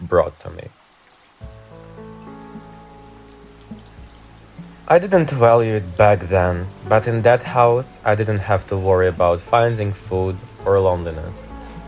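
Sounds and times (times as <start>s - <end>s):
shower running in a tiny Parisian apartment: 0.0s - 11.8s
speech: 0.1s - 0.8s, 4.9s - 11.4s.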